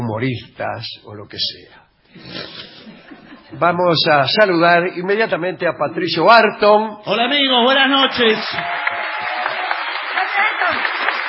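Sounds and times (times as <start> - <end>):
speech: 0.1 - 2.7, 3.6 - 8.9
laughter: 2.2 - 3.6
audience applause and ovation: 7.8 - 11.2.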